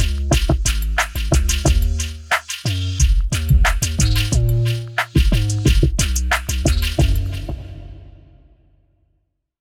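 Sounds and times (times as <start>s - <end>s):
rock bassline: 0.0s - 7.6s.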